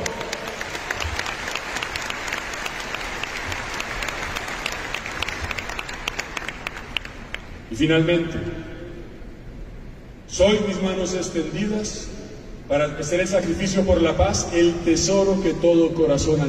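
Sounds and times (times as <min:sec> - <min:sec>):
audience applause: 0:00.0 - 0:07.4
speech: 0:07.8 - 0:08.7, 0:10.4 - 0:12.1, 0:12.7 - 0:16.4.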